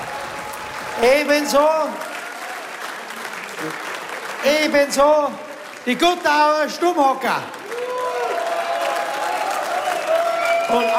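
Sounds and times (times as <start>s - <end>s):
audience applause: 0.0s - 10.9s
speech: 1.0s - 2.1s, 3.6s - 7.6s, 10.7s - 10.9s.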